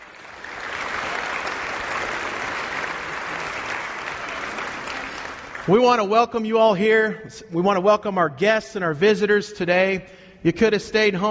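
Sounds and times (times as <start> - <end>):
church congregation applauding during a Sunday morning service: 0.0 - 6.4
speech: 5.7 - 11.3.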